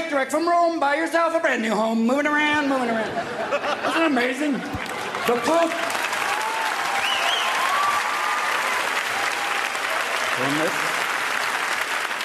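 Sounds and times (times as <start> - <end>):
speech: 0.1 - 6.0, 10.4 - 10.8
laughter: 2.8 - 5.9
audience applause: 4.8 - 12.2.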